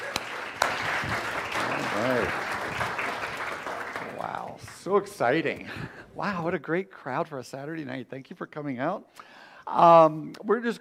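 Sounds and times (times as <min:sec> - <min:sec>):
audience applause: 0:00.0 - 0:05.1
speech: 0:04.8 - 0:10.7.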